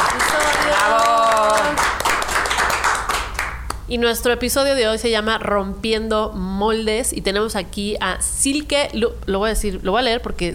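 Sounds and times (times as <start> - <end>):
applause: 0.0 - 3.8
speech: 3.9 - 10.5.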